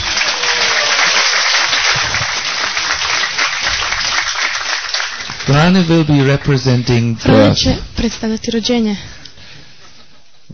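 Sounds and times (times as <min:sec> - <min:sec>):
audience applause: 0:00.0 - 0:07.1
speech: 0:05.5 - 0:09.2.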